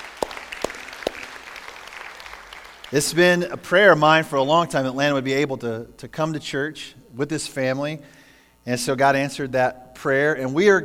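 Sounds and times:
church audience clapping: 0.0s - 3.4s
speech: 2.9s - 10.8s.

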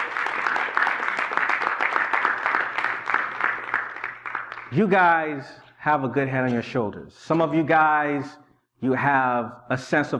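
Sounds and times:
audience applause: 0.0s - 4.7s
speech: 4.7s - 10.1s.

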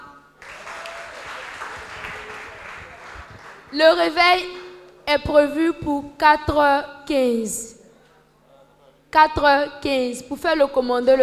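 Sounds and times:
audience applause: 0.4s - 3.8s
speech: 3.7s - 7.8s, 9.1s - 11.2s.

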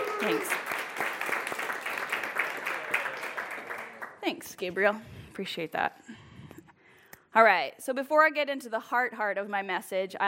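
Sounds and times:
audience applause: 0.0s - 4.2s
speech: 0.2s - 0.6s, 4.3s - 6.2s, 7.4s - 10.2s.

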